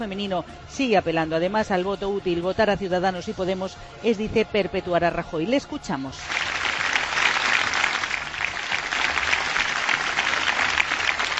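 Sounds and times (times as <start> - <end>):
speech: 0.0 - 6.4
crowd ovation at a campaign rally: 6.2 - 11.3.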